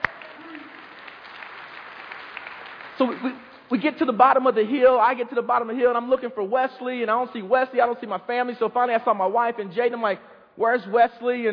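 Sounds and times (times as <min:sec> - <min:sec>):
faint audience applause: 0:00.0 - 0:03.6
speech: 0:03.0 - 0:11.5.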